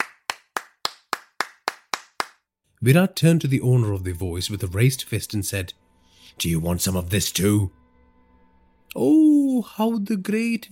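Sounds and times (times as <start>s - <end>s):
hand claps in a reverberant space: 0.0s - 2.5s
speech: 2.8s - 7.8s, 8.9s - 10.7s.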